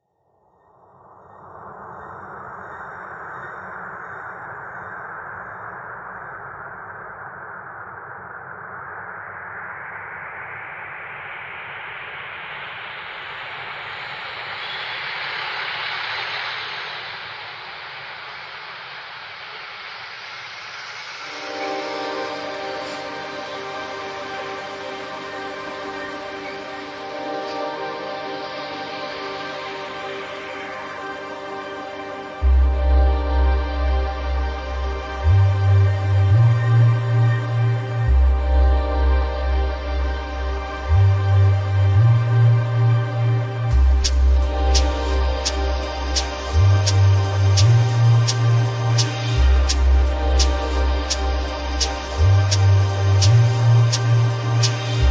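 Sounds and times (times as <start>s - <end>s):
drum and bass textures: 11.1s - 55.0s.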